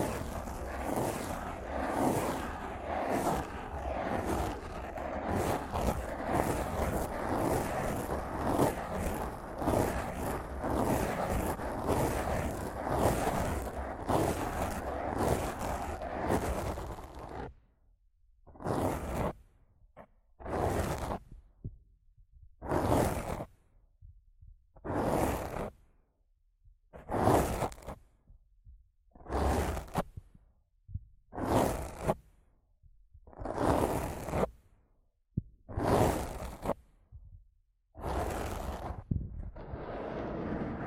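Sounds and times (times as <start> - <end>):
rough microphone scratching and brushing: 0.0 - 17.6, 18.5 - 19.4, 20.4 - 21.4, 22.6 - 23.6, 24.8 - 25.8, 27.0 - 28.0, 29.2 - 30.3, 31.3 - 32.3, 33.3 - 34.7, 35.7 - 36.9, 38.0 - 40.8.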